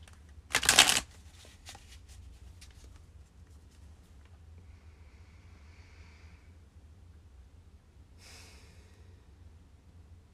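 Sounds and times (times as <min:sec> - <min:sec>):
tarot cards being shuffled for a reading: 0:00.0 - 0:03.9.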